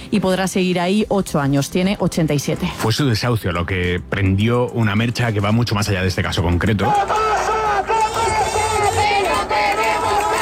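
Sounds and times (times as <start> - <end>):
speech: 0.1 - 8.2
housing protest crowd chanting: 6.9 - 10.4.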